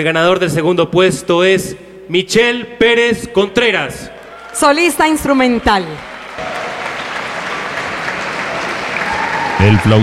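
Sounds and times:
speech: 0:00.0 - 0:06.5, 0:09.6 - 0:10.0
audience applause for a flute soloist at an awards ceremony: 0:05.4 - 0:10.0.

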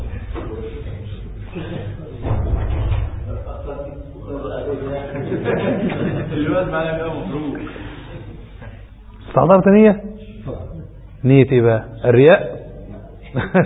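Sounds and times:
heavy low bang: 0:00.0 - 0:04.6
laughter: 0:01.4 - 0:02.3, 0:03.2 - 0:08.5, 0:13.2 - 0:13.6
door thumping and rattling as people force it open: 0:02.2 - 0:03.5
speech: 0:05.4 - 0:07.8, 0:09.3 - 0:10.1, 0:11.2 - 0:12.6, 0:13.3 - 0:13.6.

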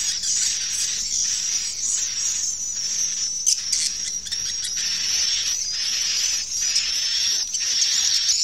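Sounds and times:
swiftlets twittering in a continuous chorus: 0:00.0 - 0:08.3.

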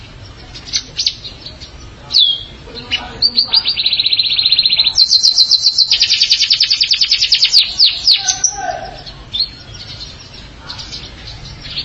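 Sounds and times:
canary singing: 0:00.0 - 0:11.8.

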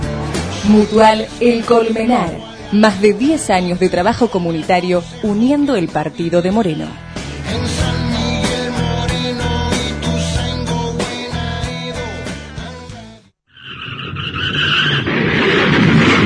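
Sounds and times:
bright rhythmic music: 0:00.0 - 0:12.7
speech: 0:00.6 - 0:07.7
car tires screeching: 0:13.5 - 0:15.7
car crash: 0:13.7 - 0:16.2.

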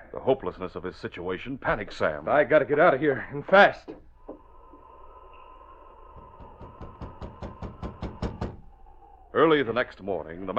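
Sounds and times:
faint hum: 0:00.0 - 0:10.5
speech: 0:00.1 - 0:04.0, 0:09.4 - 0:10.5
knocks on a cabin door: 0:06.4 - 0:08.6.

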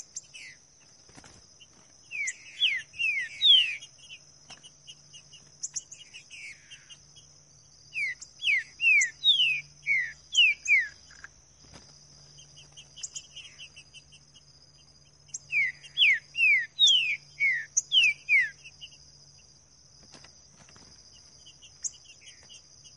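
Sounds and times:
green-winged saltator singing in the bush: 0:00.0 - 0:00.6, 0:01.6 - 0:07.2, 0:07.9 - 0:11.3, 0:12.3 - 0:14.4, 0:15.1 - 0:19.0.

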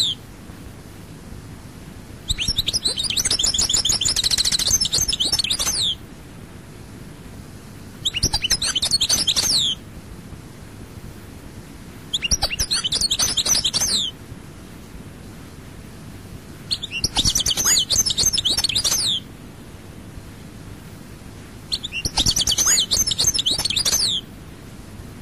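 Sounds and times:
European goldfinch singing: 0:02.3 - 0:06.0, 0:08.0 - 0:09.8, 0:12.1 - 0:14.1, 0:16.7 - 0:19.2, 0:21.7 - 0:24.2.

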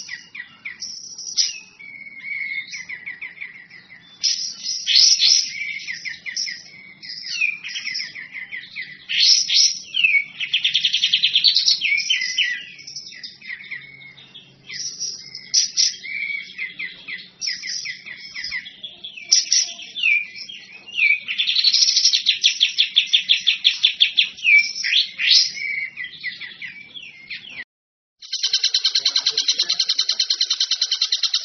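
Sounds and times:
bird singing a high rapid chatter: 0:00.0 - 0:27.6, 0:28.2 - 0:31.4.

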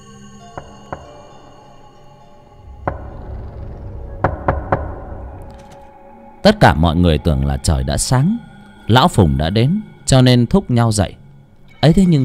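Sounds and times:
steady droning background: 0:00.0 - 0:12.2
knocking on a door: 0:00.6 - 0:01.2, 0:02.7 - 0:05.5
speech: 0:06.4 - 0:11.2, 0:11.8 - 0:12.2.

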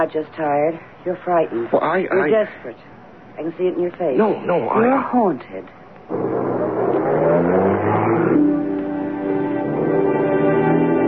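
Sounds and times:
speech: 0:00.0 - 0:06.5
car engine driving off: 0:06.1 - 0:11.0.

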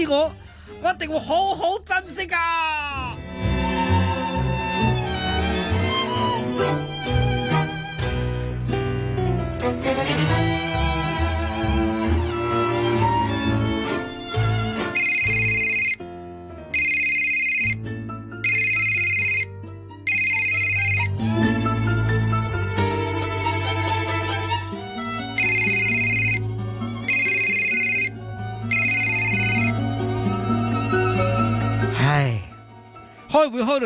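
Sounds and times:
speech: 0:00.0 - 0:03.2, 0:33.4 - 0:33.8
music: 0:00.0 - 0:33.8
mobile phone ringing with electronic ringtone: 0:15.0 - 0:16.0, 0:16.7 - 0:19.5, 0:20.1 - 0:21.2, 0:25.3 - 0:29.8.

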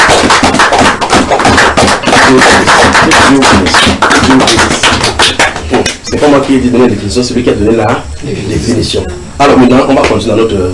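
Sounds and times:
audience applause: 0:00.0 - 0:06.0
speech: 0:02.3 - 0:04.9, 0:06.2 - 0:10.7.

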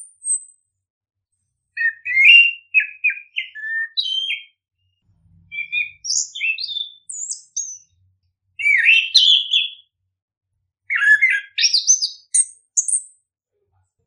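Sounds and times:
bird singing chirps and whistles: 0:01.7 - 0:04.6, 0:05.5 - 0:08.0, 0:08.6 - 0:09.9, 0:10.8 - 0:13.2.

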